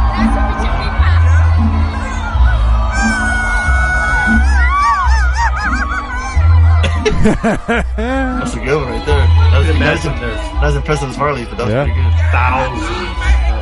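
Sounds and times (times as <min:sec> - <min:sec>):
drunk crowd singing karaoke: 0:00.0 - 0:03.2, 0:03.8 - 0:13.6
laughter: 0:02.5 - 0:10.4
speech: 0:07.2 - 0:13.3.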